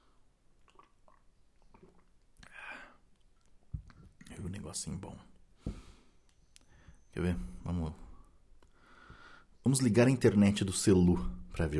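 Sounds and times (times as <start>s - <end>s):
person sipping hot coffee: 0.2s - 4.3s
speech: 4.7s - 5.3s, 7.2s - 8.0s, 9.6s - 11.7s.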